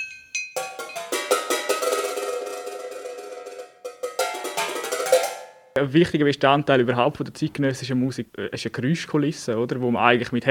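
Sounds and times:
bottles and cans played as percussion: 0.0 - 5.8
speech: 5.8 - 10.5.

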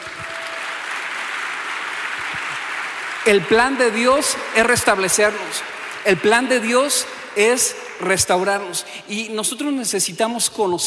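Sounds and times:
audience applauding: 0.0 - 6.6
speech: 3.2 - 10.8.

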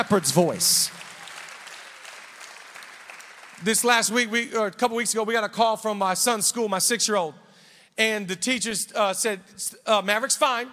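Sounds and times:
speech: 0.0 - 1.0, 3.6 - 10.7
audience clapping: 0.0 - 4.2.

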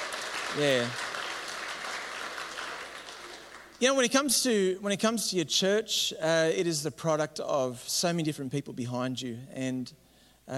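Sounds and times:
audience applause: 0.0 - 3.8
speech: 0.5 - 1.0, 3.8 - 10.5.

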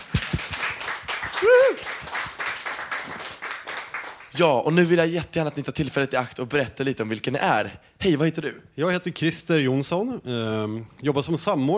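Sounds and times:
audience applause: 0.0 - 4.3
speech: 4.4 - 11.7.

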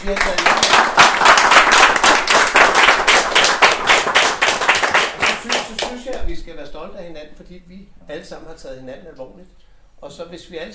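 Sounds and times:
speech: 0.0 - 1.0, 6.8 - 10.7
group clapping for each other: 0.0 - 6.3.

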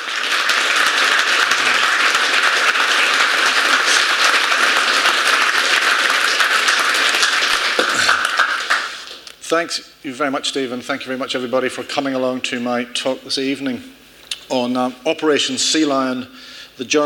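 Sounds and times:
audience applause welcoming a speaker: 0.0 - 9.3
speech: 9.5 - 17.0.

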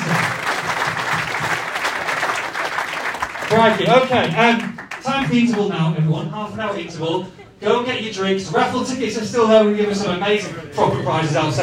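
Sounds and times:
audience applause: 0.0 - 5.3
speech: 3.5 - 11.6.

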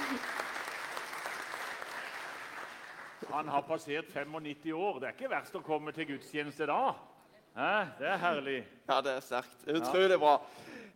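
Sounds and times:
audience applauding: 0.0 - 3.5
speech: 3.4 - 10.9.

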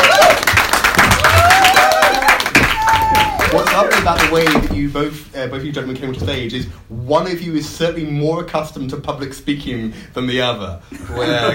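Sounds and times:
audience cheering and whooping: 0.0 - 4.0
audience applause welcoming guests to a stage: 0.0 - 4.7
speech: 4.3 - 11.5.

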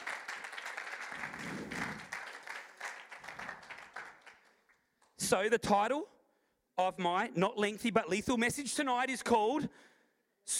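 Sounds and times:
audience hand clapping: 0.0 - 5.2
speech: 5.3 - 6.1, 6.8 - 9.9.

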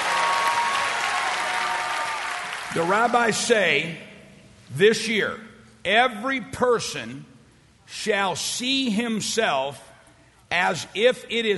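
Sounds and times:
audience clapping as offering: 0.0 - 3.2
speech: 2.8 - 4.1, 4.7 - 7.3, 7.9 - 9.9, 10.5 - 11.5.

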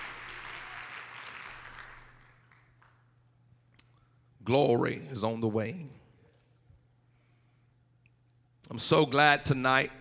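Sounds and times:
audience clapping hands: 0.0 - 3.1
low steady hum: 0.0 - 9.9
speech: 4.5 - 6.0, 8.7 - 9.9.

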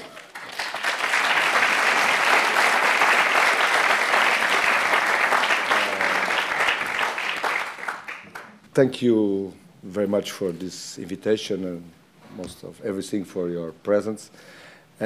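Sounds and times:
audience applause welcoming the speaker at an evening architecture lecture: 0.0 - 8.6
speech: 8.8 - 15.0.

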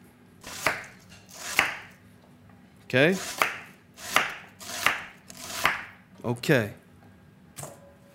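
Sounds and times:
knife chopping celery root on a cutting board: 0.5 - 1.9, 3.2 - 5.9.

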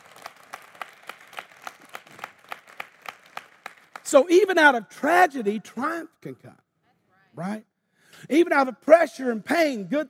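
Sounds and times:
audience hand clapping: 0.0 - 4.4
speech: 4.1 - 6.6, 7.4 - 10.0.

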